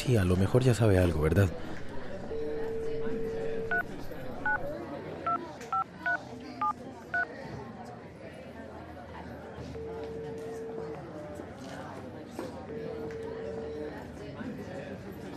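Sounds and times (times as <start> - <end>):
speech: 0.0 - 1.8
murmur of voices: 0.0 - 15.3
touch-tone beeps of a telephone number being dialed: 2.2 - 6.2, 9.7 - 11.0
telephone dial tone: 2.3 - 4.7, 9.6 - 11.1.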